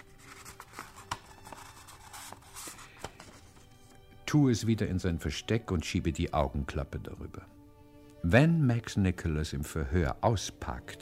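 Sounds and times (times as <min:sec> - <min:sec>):
sheet of paper being rolled up: 0:00.0 - 0:04.0
speech: 0:04.3 - 0:07.6, 0:08.2 - 0:11.0.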